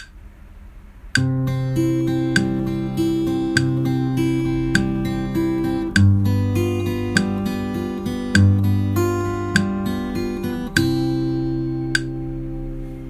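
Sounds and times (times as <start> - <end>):
arpeggio: 1.2 - 13.0.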